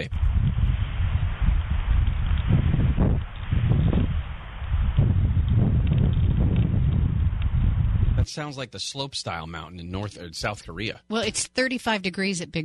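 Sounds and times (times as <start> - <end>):
speech: 0.0 - 0.2, 8.4 - 12.6
wind roaring at the top of a tree at Big Bear Lake: 0.0 - 8.3.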